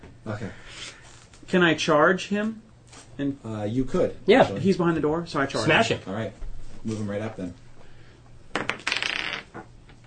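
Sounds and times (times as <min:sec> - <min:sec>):
speech: 0:00.2 - 0:07.6
dice clattering across a hard tabletop: 0:08.5 - 0:10.0.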